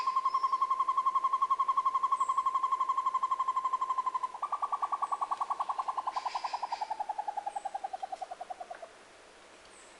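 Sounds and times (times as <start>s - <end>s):
tovaca-campainha singing: 0.0s - 8.9s.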